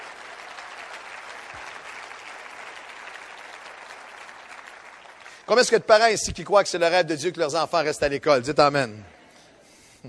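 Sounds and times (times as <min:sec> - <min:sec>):
audience applause: 0:00.0 - 0:06.0
speech: 0:05.5 - 0:09.2.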